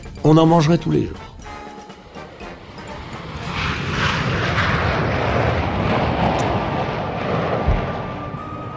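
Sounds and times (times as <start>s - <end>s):
speech: 0.2s - 1.3s
Concorde supersonic airliner flying overhead: 1.2s - 8.7s.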